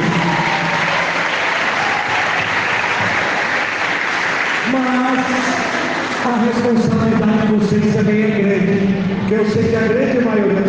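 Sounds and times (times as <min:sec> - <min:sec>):
audience applause welcoming students: 0:00.0 - 0:06.8
speech: 0:06.3 - 0:10.6.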